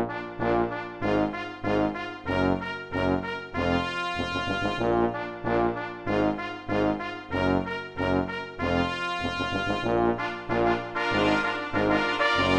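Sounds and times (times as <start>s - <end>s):
fanfare: 0.1s - 12.5s.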